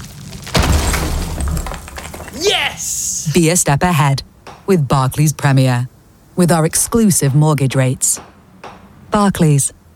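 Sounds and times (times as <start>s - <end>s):
wall being knocked down: 0.0s - 2.5s
scattering debris: 0.0s - 2.6s
speech: 2.4s - 8.3s, 9.2s - 9.8s.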